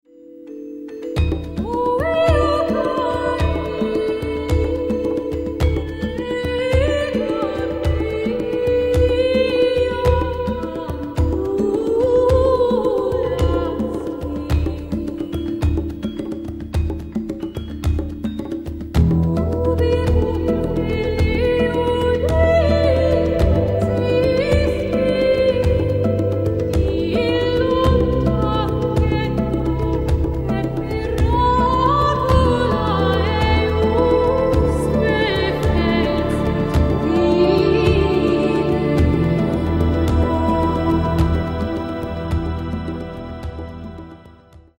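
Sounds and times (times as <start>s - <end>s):
background music: 0.1s - 44.7s.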